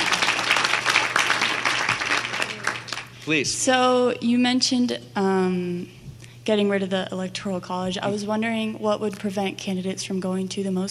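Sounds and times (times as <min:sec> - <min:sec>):
audience applause: 0:00.0 - 0:03.2
speech: 0:03.2 - 0:10.9.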